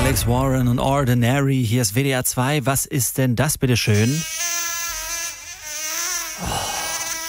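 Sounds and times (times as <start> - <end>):
speech: 0.2 - 4.4
mosquito buzzing: 4.0 - 7.2.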